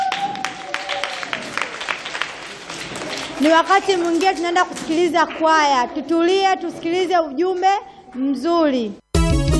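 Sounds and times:
church congregation clapping for a choir's song: 0.0s - 5.7s
speech: 3.4s - 9.0s.

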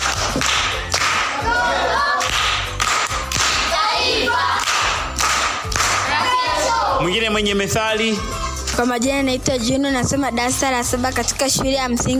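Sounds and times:
primary school children giving a rhythmic group clap: 0.0s - 7.0s
speech: 7.1s - 12.1s.

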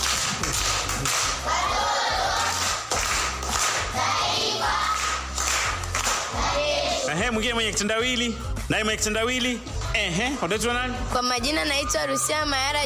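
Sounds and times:
audience clapping at a primary school event after pupils solve a riddle: 0.0s - 7.0s
speech: 7.3s - 12.8s.

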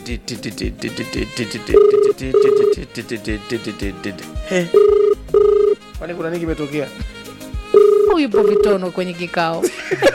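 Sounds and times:
speech: 0.0s - 5.2s, 6.0s - 7.1s, 8.1s - 10.1s
rhythmic sound: 0.0s - 9.4s
telephone ringback tone: 1.7s - 2.8s, 4.8s - 5.8s, 7.8s - 8.8s
laughter: 9.6s - 10.1s.

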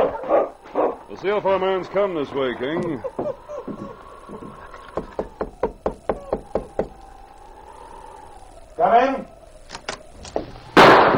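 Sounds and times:
door opening: 0.0s - 11.1s
laughter: 0.0s - 11.1s
speech: 1.2s - 3.8s, 8.8s - 9.3s.

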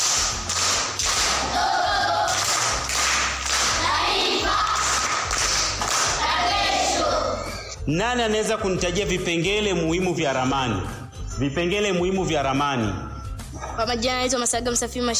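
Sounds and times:
classroom rhythmic hand clapping for a pupil during a geography lesson: 0.0s - 7.1s
speech: 7.9s - 13.1s, 13.8s - 15.1s.

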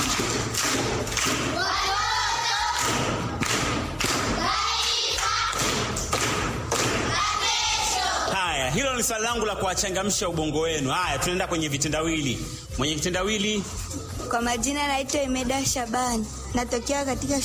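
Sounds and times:
schoolchildren clapping: 0.0s - 7.3s
children's voices: 1.5s - 3.2s, 4.2s - 5.9s, 6.9s - 8.3s
speech: 9.1s - 17.4s.

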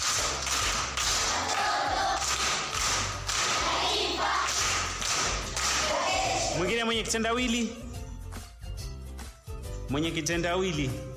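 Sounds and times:
primary school audience rhythmic group clapping for a pupil: 0.0s - 6.7s
speech: 6.8s - 7.8s, 9.9s - 11.1s.

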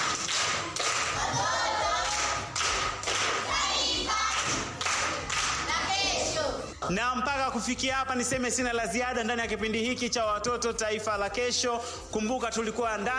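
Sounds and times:
children at Nyasura primary school clapping in rhythm: 0.0s - 6.0s
children's voices: 3.4s - 4.7s, 5.4s - 6.8s
speech: 6.9s - 13.1s.

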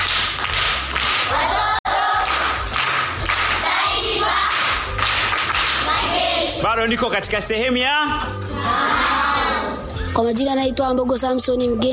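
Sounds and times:
primary school pupils clapping in a rhythmic group round: 0.0s - 6.6s
speech: 6.8s - 9.2s, 10.2s - 11.9s.

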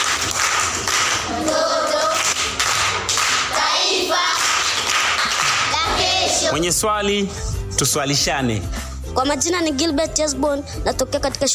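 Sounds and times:
group clapping at a school quiz session: 0.0s - 6.6s
speech: 6.6s - 11.5s.

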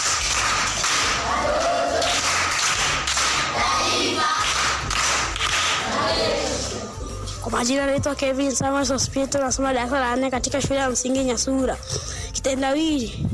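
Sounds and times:
primary school pupils clapping: 0.0s - 6.8s
speech: 7.6s - 13.3s.

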